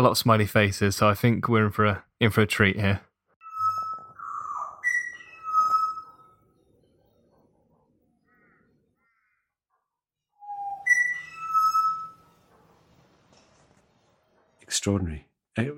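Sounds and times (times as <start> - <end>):
speech: 0.0 - 3.1, 14.8 - 15.7
butcherbirds singing: 3.4 - 9.6, 10.4 - 12.6.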